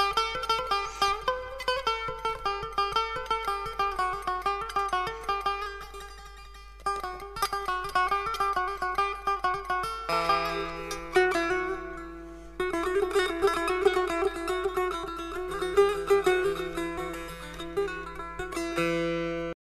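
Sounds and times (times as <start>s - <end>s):
setar playing: 0.0s - 19.6s.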